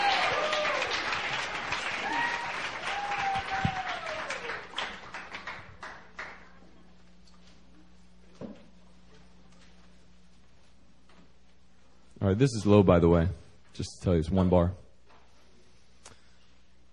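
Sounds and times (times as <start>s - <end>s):
church audience clapping to welcome a pastor: 0.0s - 6.6s
speech: 12.2s - 14.8s.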